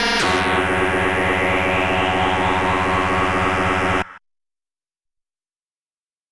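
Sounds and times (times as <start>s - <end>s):
aggressive edges sequence lead sound effect: 0.0s - 4.2s.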